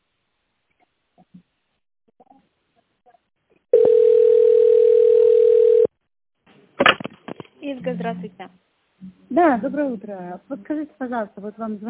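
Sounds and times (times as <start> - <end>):
telephone line tone while waiting: 3.7 - 6.0
speech: 7.7 - 11.8.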